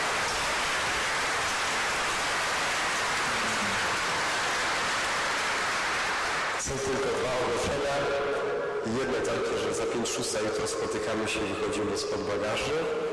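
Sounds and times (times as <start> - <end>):
crowd applauding: 0.0 - 7.6
speech: 8.9 - 13.1.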